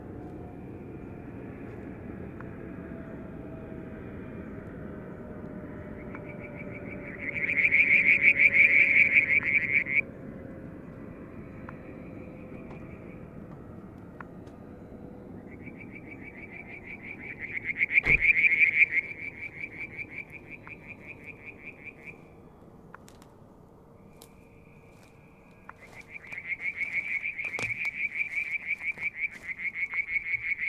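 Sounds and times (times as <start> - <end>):
low background rumble: 0.0 - 30.6
frog trilling: 6.0 - 10.0, 15.4 - 22.2, 25.7 - 30.6.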